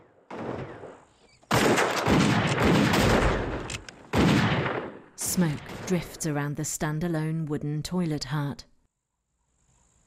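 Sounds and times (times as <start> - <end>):
heavy gunfire exchange from a shootout at a wooden toilet hut: 1.5 - 5.0
speech: 5.4 - 8.7.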